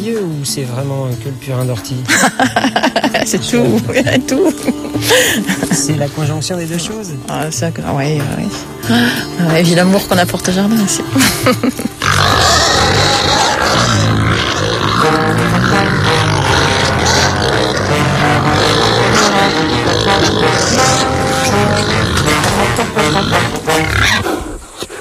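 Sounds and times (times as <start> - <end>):
speech: 0.0 - 12.4
laughter: 2.1 - 6.0, 11.1 - 12.0
black Gascon pigs grunting and snorting: 12.0 - 25.0.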